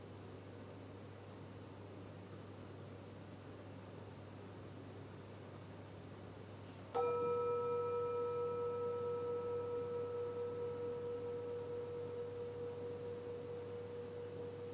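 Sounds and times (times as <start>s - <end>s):
low hum: 7.0s - 14.7s
metal bowl struck and ringing: 7.0s - 14.7s.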